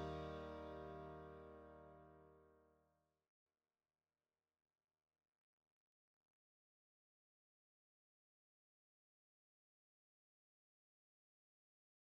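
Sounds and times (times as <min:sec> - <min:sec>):
backing track in E-flat major at 92 bpm: 0:00.0 - 0:02.1.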